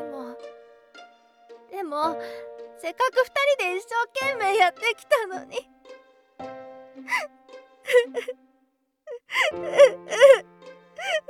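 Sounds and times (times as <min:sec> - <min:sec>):
speech: 0:01.9 - 0:05.7, 0:06.4 - 0:08.4, 0:09.3 - 0:10.4
person crying after a manga was rejected by a publisher: 0:07.9 - 0:08.4, 0:09.1 - 0:11.2.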